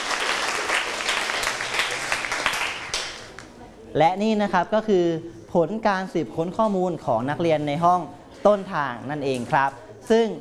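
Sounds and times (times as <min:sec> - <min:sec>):
classroom group clapping for a student: 0:00.0 - 0:03.6
speech: 0:03.9 - 0:10.3.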